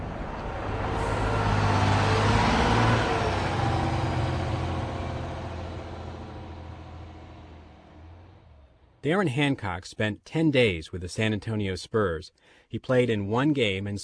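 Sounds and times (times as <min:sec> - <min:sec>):
bus engine running on the highway: 0:00.0 - 0:09.0
highway road noise: 0:00.0 - 0:09.1
speech: 0:09.0 - 0:14.0.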